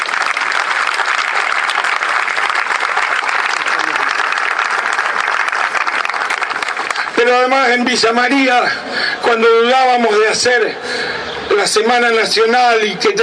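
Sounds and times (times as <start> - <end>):
audience applause: 0.0 - 7.2
speech: 7.3 - 13.2.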